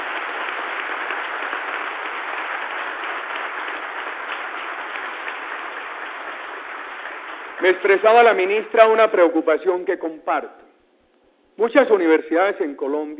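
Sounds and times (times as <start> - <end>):
crowd applause: 0.0 - 8.7
speech: 7.6 - 10.6, 11.6 - 13.1.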